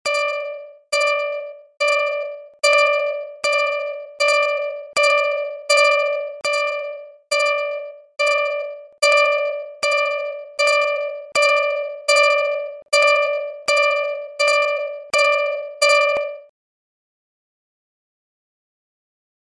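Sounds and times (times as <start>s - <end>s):
HTC One phone alarm: 0.0s - 16.5s.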